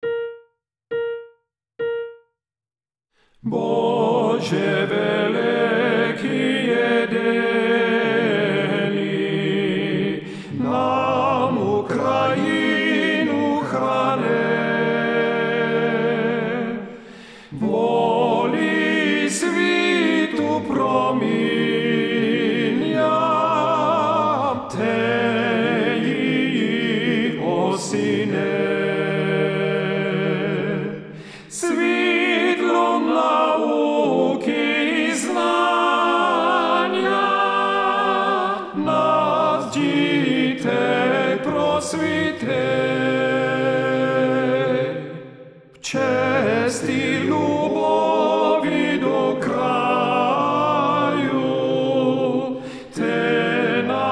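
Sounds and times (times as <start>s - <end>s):
tenor voice singing TTB choral part: 3.4s - 16.8s, 17.6s - 45.2s, 45.8s - 54.1s.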